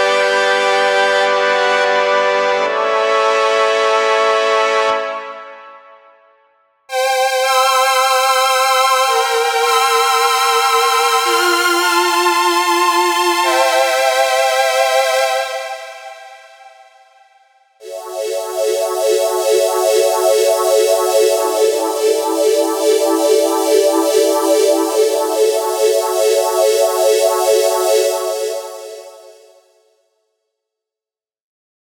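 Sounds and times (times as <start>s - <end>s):
brass: 0.0s - 6.4s
strings: 6.9s - 16.9s, 17.8s - 29.5s.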